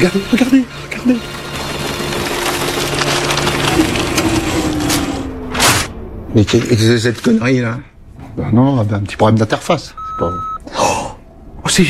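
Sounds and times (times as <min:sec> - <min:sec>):
speech: 0:00.0 - 0:01.4, 0:06.4 - 0:11.0, 0:11.7 - 0:11.8
printer running then jamming: 0:00.0 - 0:06.3
crunching, clicking paper noises: 0:01.3 - 0:05.9.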